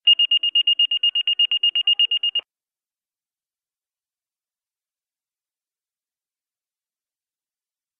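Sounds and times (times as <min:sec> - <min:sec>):
beep: 0:00.0 - 0:02.4.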